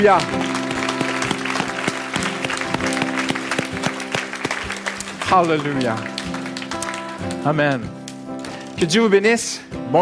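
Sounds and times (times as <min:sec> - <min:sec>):
speech: 0:00.0 - 0:00.4, 0:05.3 - 0:06.4, 0:07.2 - 0:08.0, 0:08.8 - 0:10.0
congregation applauding in an ovation during a Sunday church service: 0:00.0 - 0:07.8.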